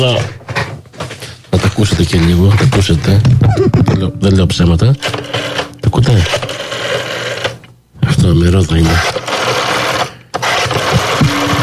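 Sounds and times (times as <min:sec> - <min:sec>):
speech: 0:00.0 - 0:00.4, 0:01.7 - 0:06.6, 0:08.2 - 0:09.3
rotary telephone dial whirring: 0:05.0 - 0:07.7, 0:08.8 - 0:11.6.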